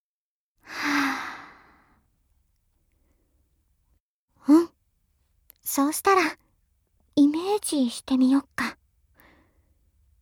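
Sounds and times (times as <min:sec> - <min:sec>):
slow deep breath: 0:00.6 - 0:02.1, 0:09.1 - 0:09.8
speech: 0:05.7 - 0:06.4, 0:07.2 - 0:08.8.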